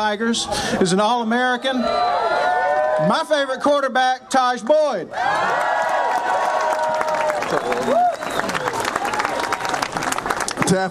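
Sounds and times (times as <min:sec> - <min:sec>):
speech: 0:00.0 - 0:06.6
crowd cheering and applauding: 0:01.8 - 0:03.2, 0:05.1 - 0:10.8.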